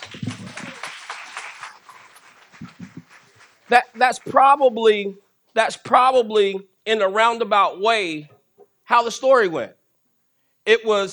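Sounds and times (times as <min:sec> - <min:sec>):
audience clapping: 0:00.0 - 0:04.6
speech: 0:03.7 - 0:08.3, 0:08.9 - 0:09.8, 0:10.6 - 0:11.1.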